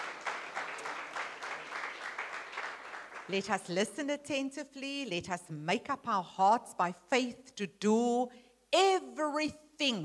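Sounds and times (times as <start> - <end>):
audience applause: 0.0 - 3.4
speech: 3.3 - 10.0.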